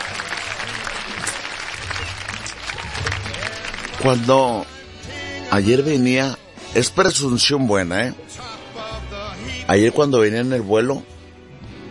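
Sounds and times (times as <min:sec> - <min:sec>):
applause: 0:00.0 - 0:04.5
speech: 0:04.0 - 0:04.8, 0:05.5 - 0:08.6, 0:09.7 - 0:11.1.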